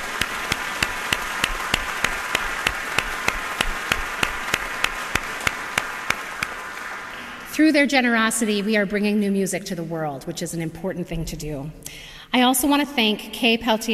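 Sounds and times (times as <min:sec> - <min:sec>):
audience applause: 0:00.0 - 0:07.5
speech: 0:07.6 - 0:13.9.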